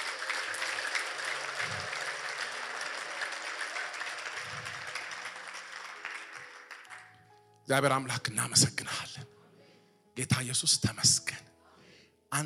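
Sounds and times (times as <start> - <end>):
church congregation clapping in praise of God: 0.0 - 7.3
speech: 7.7 - 9.3, 10.2 - 11.5.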